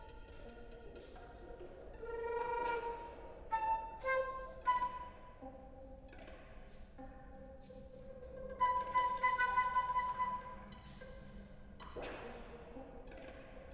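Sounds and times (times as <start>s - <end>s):
flute piece on magnetic tape: 2.0s - 5.5s, 8.4s - 10.8s.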